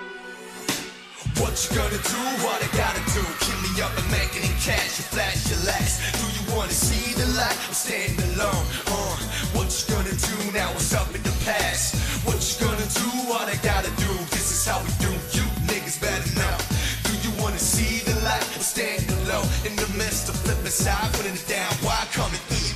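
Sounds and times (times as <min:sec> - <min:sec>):
rap music: 0:00.6 - 0:22.7.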